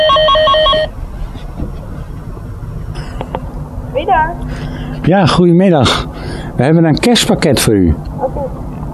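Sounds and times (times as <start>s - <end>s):
doorbell ringing: 0.0s - 0.9s
speech: 5.1s - 8.6s.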